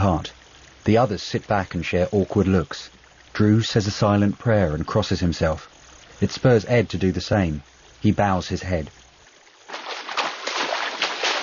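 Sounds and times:
speech: 0.0 - 9.0
water splashing and sloshing as canoes race down a stream: 9.2 - 11.4
canoe paddling: 9.6 - 11.4.

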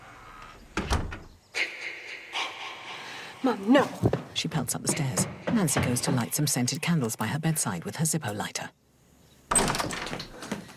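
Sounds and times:
door creaking open downstairs: 0.2 - 1.4, 9.5 - 10.7
speech: 3.4 - 8.8.

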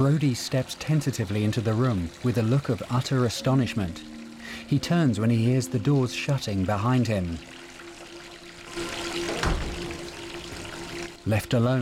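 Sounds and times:
water running into a bathtub: 0.0 - 5.4, 6.2 - 11.3
speech: 0.0 - 7.6, 11.3 - 11.7.

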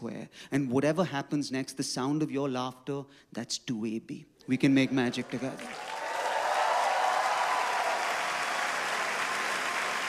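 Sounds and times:
speech: 0.0 - 6.0
audience applause: 4.6 - 10.0.

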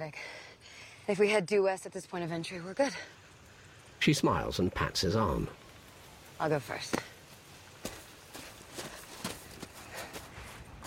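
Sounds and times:
speech: 0.0 - 0.4, 1.1 - 3.2, 4.0 - 5.6, 6.4 - 7.1
constant hiss: 0.0 - 10.8
footsteps of people walking into a minefield: 6.8 - 10.8.

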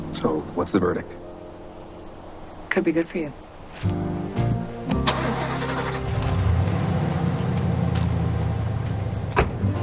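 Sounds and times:
speech: 0.1 - 1.3, 2.7 - 4.1
van engine starting and driving: 4.9 - 9.8.

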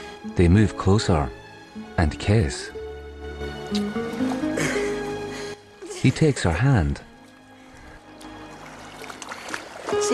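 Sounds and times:
speech: 0.4 - 1.4, 2.0 - 2.8, 3.7 - 4.0, 6.0 - 7.1
low murmuring water wash: 7.8 - 10.1
solitary tail flapping the water: 8.0 - 10.1.

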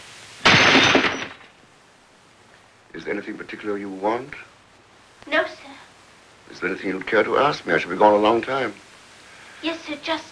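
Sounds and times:
brandy glass thrown at a fireplace shattering: 0.4 - 1.6
speech: 3.0 - 4.5, 5.2 - 5.6, 6.6 - 8.8, 9.6 - 10.3.

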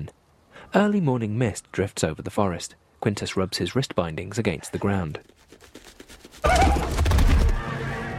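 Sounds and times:
speech: 0.0 - 5.8
horses ridden by a group of Picts whinnying: 6.4 - 7.8.

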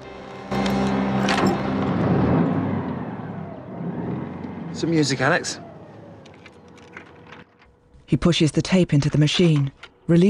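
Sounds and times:
car engine starting with a turn of the key: 0.0 - 8.0
speech: 4.8 - 5.7, 8.1 - 10.2.

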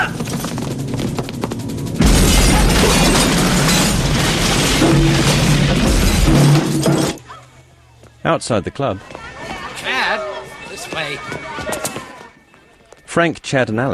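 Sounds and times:
crackling debris from a bomb explosion: 0.2 - 7.3
bomb explosion inside a club: 2.0 - 6.9
speech: 8.3 - 9.2, 13.1 - 13.9.

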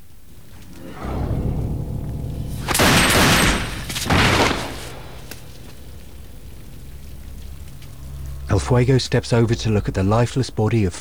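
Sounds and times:
low rumbling bed: 0.0 - 10.9
gunshots in an audio drama: 2.6 - 5.7
speech: 8.6 - 10.9.

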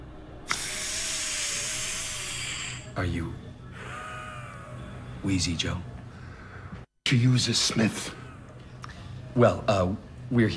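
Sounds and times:
asthma inhaler puff: 0.5 - 2.9
speech: 3.0 - 3.5, 5.2 - 5.9, 7.1 - 8.2, 9.4 - 10.5.

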